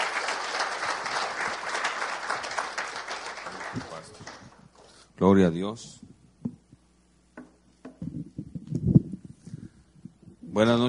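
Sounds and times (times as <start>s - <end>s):
church congregation applauding to welcome speakers at an evening service: 0.0s - 4.9s
speech: 5.2s - 6.1s, 10.6s - 10.8s.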